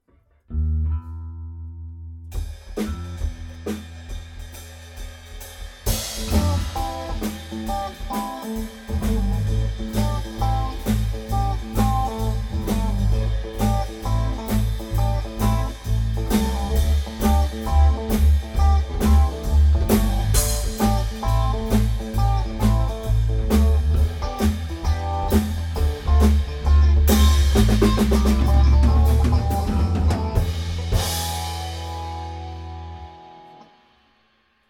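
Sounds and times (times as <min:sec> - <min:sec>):
blues music: 0:00.1 - 0:34.1.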